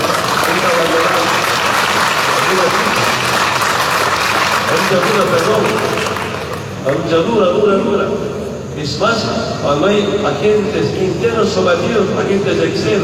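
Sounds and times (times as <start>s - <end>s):
audience applause: 0.0s - 6.8s
speech: 4.9s - 6.0s, 6.8s - 13.0s.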